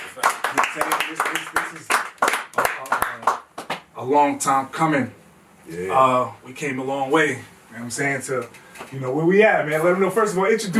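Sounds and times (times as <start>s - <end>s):
people clapping: 0.0s - 3.9s
speech: 0.2s - 2.0s, 4.0s - 10.7s.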